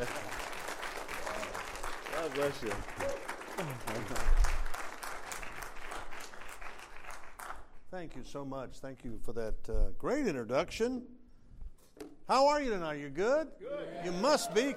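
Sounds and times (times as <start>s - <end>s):
audience applause: 0.0s - 7.7s, 14.0s - 14.7s
speech: 2.2s - 4.5s, 7.9s - 11.2s, 12.3s - 14.7s.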